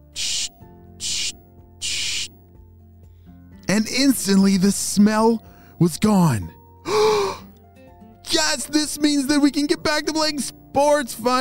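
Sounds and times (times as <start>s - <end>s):
spray bottle of Bubbleberry soap spraying: 0.0s - 2.4s
speech: 3.8s - 7.1s, 8.6s - 11.3s.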